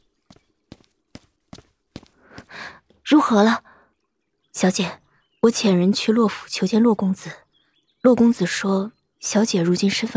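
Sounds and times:
footsteps of a maid walking in: 0.0 - 3.0
speech: 3.1 - 3.7, 4.6 - 7.4, 8.0 - 10.1.

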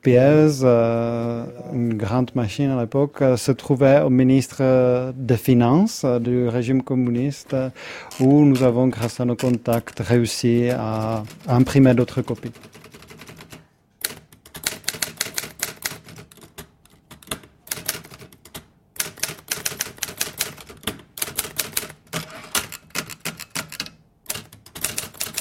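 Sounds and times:
speech: 0.0 - 12.9
typewriter keys clattering: 8.1 - 25.3.

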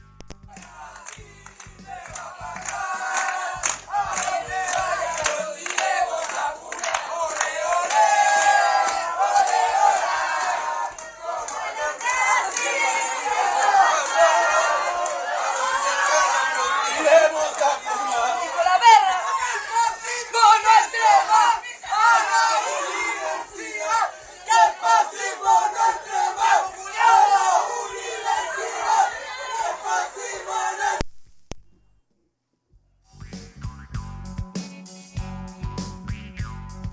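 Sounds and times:
protest crowd shouting slogans: 0.5 - 31.0
sharp claps or knocks: 0.6 - 9.6.

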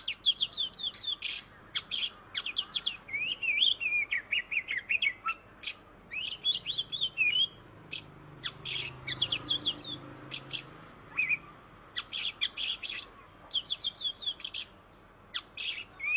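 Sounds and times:
Oriental magpie-robin song: 0.0 - 16.1.

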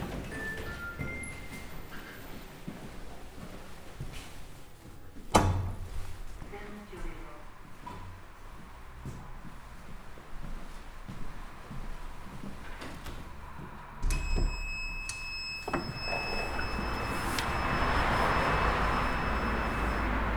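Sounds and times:
elevator doors opening at the ground floor: 0.0 - 2.6, 12.5 - 20.3.

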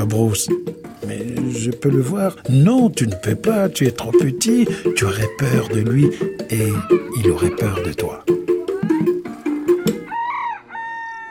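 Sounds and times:
speech: 0.1 - 8.4
old rooster clucking in front of the farmyard: 4.1 - 11.2
old rooster crowing in front of the farmyard: 4.7 - 7.3, 8.8 - 11.2.

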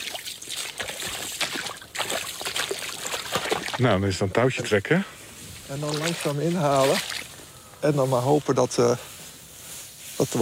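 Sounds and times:
fishing net cast into water: 0.0 - 3.8, 5.7 - 7.3
water sloshing and trickling: 0.0 - 4.7, 5.4 - 8.2
speech: 3.8 - 7.2, 7.8 - 9.1, 10.2 - 10.4.

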